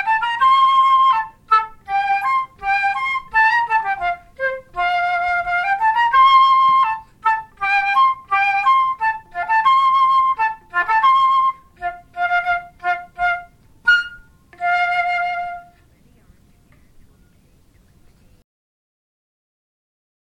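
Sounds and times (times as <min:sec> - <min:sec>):
saxophone melody: 0:00.0 - 0:15.8.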